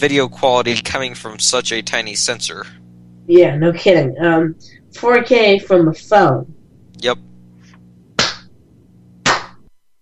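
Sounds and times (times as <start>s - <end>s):
speech: 0.0s - 7.3s
faint low hum: 0.0s - 10.0s
loud hand claps: 8.2s - 8.5s, 9.2s - 9.6s.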